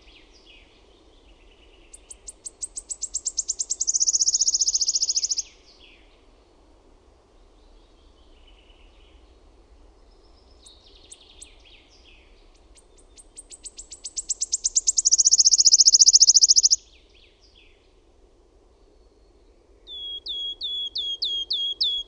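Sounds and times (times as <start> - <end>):
Wood warbler song of sharp high downslurred ticking notes: 1.9 - 5.6, 10.4 - 16.9, 19.9 - 22.0.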